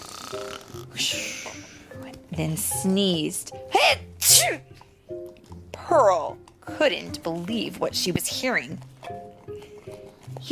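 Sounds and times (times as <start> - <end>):
person imitating snoring: 0.0 - 1.8
speech: 0.3 - 5.2, 5.9 - 9.2.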